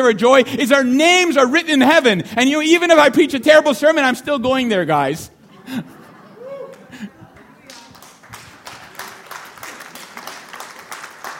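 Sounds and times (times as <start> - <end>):
speech: 0.0 - 6.0
laughter: 5.4 - 7.6
audience clapping: 6.7 - 11.3.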